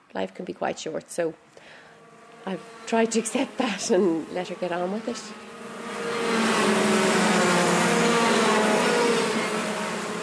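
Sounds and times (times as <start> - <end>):
speech: 0.1 - 1.8, 2.4 - 5.5
go-kart engines racing around a track at Watergrass Hill, Cork, Ireland: 2.0 - 10.2.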